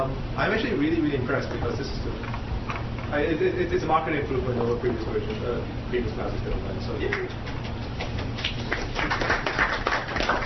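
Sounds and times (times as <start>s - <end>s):
speech: 0.0s - 7.6s
polite golf clap: 7.0s - 10.4s.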